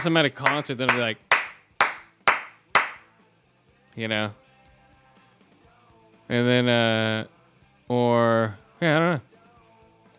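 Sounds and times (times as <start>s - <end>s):
speech: 0.0s - 1.3s, 4.0s - 4.4s, 6.3s - 7.3s, 7.9s - 9.3s
hand clapping: 0.0s - 3.1s.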